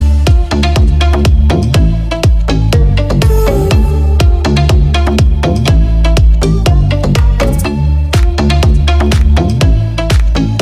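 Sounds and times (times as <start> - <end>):
music: 0.0 - 10.5.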